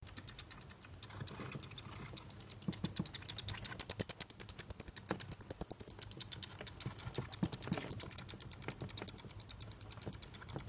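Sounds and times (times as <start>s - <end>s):
bat chirping in sharp high clicks: 0.0s - 10.6s.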